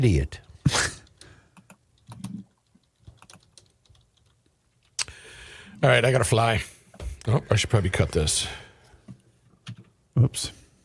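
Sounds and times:
speech: 0.0s - 0.4s, 5.8s - 8.6s, 10.2s - 10.6s
typing on a computer keyboard: 1.6s - 4.9s.

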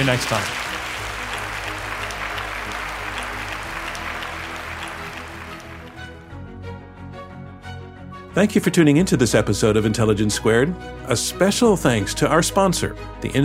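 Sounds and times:
speech: 0.0s - 0.7s, 8.4s - 13.4s
large audience applause after debate: 0.0s - 6.3s.

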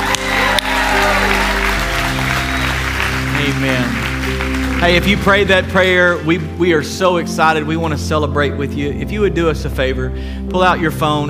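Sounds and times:
audience applause: 0.0s - 6.3s
sustained low musical tones: 0.0s - 11.2s
speech: 4.8s - 11.2s.

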